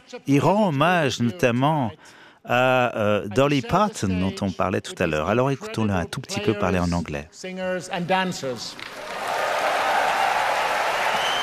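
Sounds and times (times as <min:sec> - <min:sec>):
speech: 0:00.1 - 0:09.1
audience applauding at a concert: 0:08.4 - 0:11.4.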